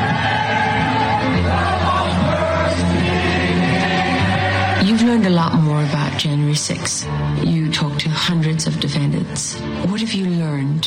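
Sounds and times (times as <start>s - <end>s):
crowd noise from a video promo: 0.0s - 8.5s
speech: 6.2s - 10.8s.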